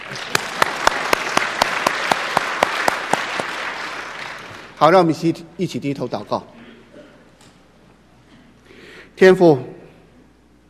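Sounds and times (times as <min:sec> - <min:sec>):
audience applause: 0:00.0 - 0:04.8
speech: 0:04.8 - 0:06.6, 0:09.2 - 0:09.8.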